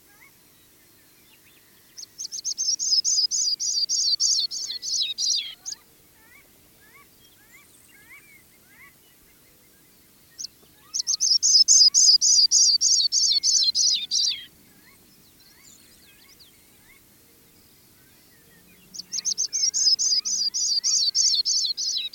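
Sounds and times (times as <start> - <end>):
Sprague's pipit calling: 2.0 - 9.0, 10.4 - 15.8, 19.0 - 22.1.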